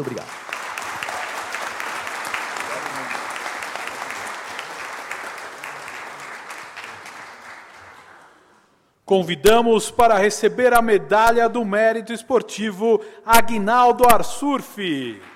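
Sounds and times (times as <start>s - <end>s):
speech: 0.0s - 0.4s, 9.1s - 15.3s
audience applause: 0.0s - 8.6s.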